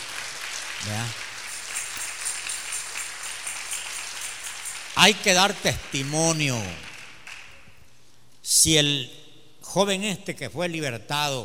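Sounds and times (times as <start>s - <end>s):
audience applause: 0.0s - 7.6s
speech: 0.8s - 1.3s, 5.0s - 6.8s, 8.5s - 11.4s.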